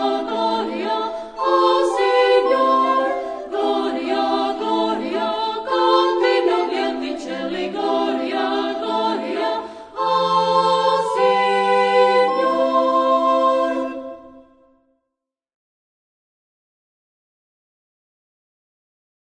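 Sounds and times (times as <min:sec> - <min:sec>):
chamber choir singing: 0:00.0 - 0:14.6
flute ensemble playing: 0:00.1 - 0:14.5.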